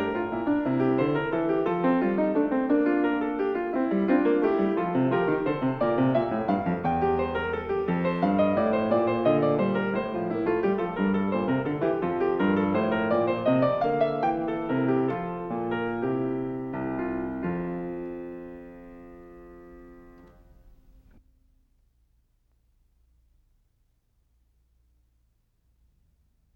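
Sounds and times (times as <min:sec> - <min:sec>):
keyboard fugue in F major: 0:00.0 - 0:21.1.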